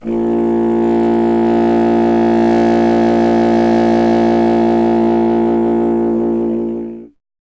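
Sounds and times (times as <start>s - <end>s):
solo contrabassoon: 0.0s - 7.2s.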